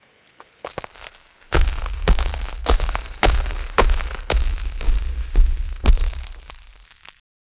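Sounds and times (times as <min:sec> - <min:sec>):
heavy stony monster walking: 0:00.4 - 0:07.2.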